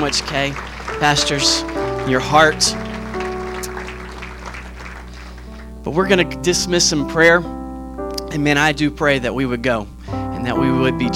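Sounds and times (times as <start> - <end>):
speech: 0.0 - 2.8, 5.8 - 7.6, 8.3 - 11.1
church applause for a guest preacher: 0.0 - 5.7
low electrical hum: 0.0 - 11.1.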